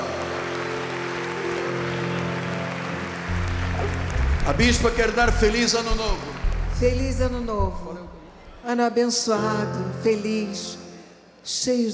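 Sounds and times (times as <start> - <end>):
audience applause: 0.0 - 8.6
speech: 4.5 - 10.8, 11.4 - 11.9.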